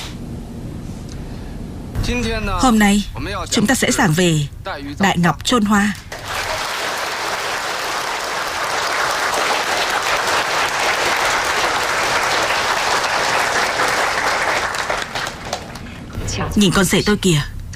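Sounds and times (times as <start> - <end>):
speech: 2.0 - 6.1, 16.4 - 17.7
students applauding in a classroom: 6.1 - 16.0.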